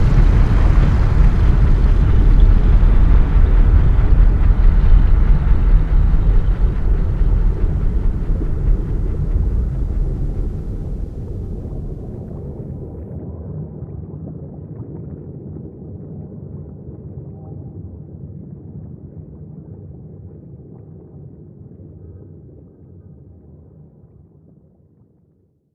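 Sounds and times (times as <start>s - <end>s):
large sub bass pass-by: 0.0s - 12.9s.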